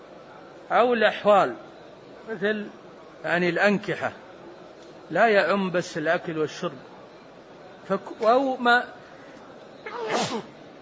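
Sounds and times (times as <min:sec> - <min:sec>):
speech: 0:00.7 - 0:01.6, 0:02.3 - 0:04.2, 0:05.1 - 0:06.9, 0:07.9 - 0:09.0, 0:10.0 - 0:10.5
sneeze: 0:09.8 - 0:10.6.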